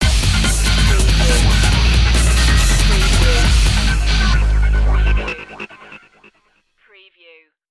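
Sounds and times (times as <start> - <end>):
un-fairground stinger: 0.5 - 6.5.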